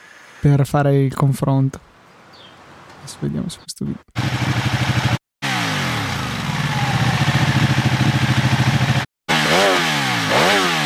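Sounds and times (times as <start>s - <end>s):
speech: 0.4s - 1.9s, 3.1s - 4.5s
motorcycle with stock exhaust idling and revving: 4.2s - 10.8s.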